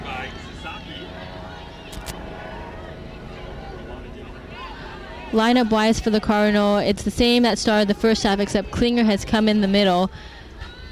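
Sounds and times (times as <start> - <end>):
medical helicopter flying overhead: 0.0 - 10.9
speech: 5.3 - 10.3.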